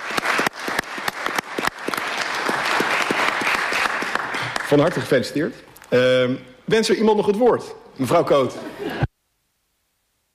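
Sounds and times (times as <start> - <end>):
meeting applauding to approve an appointment by acclamation: 0.0 - 5.3
speech: 4.7 - 9.0
laughter: 8.4 - 9.1.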